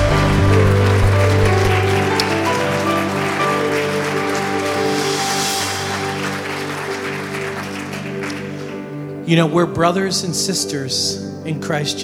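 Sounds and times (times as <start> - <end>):
audience clapping in praise: 0.0 - 9.2
low musical tones: 0.0 - 12.0
speech: 9.3 - 12.0.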